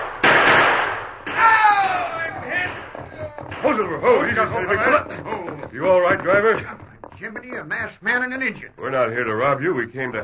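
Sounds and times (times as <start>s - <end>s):
gunshots from approaching riders: 0.0s - 4.4s
excited voices shouting: 1.3s - 3.5s
clattering busy background: 1.3s - 10.2s
speech: 3.7s - 10.2s.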